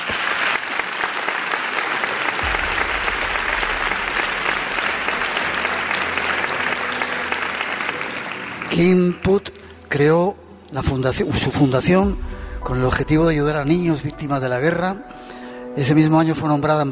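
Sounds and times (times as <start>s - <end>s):
audience applause: 0.0s - 9.9s
speech: 8.7s - 15.2s, 15.8s - 16.9s.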